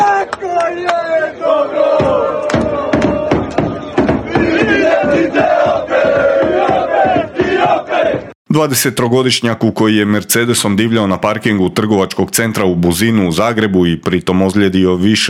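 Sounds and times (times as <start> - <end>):
Croatian football fans singing and chanting after a defeat: 0.0 - 8.4
sharp rhythmic beats: 2.0 - 8.3
speech: 8.6 - 15.2.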